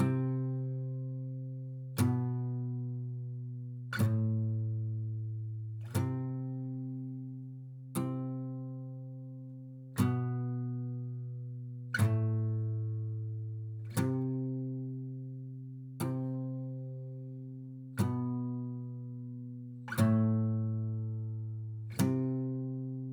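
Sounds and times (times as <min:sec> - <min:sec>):
acoustic music pattern: 0:00.0 - 0:23.1.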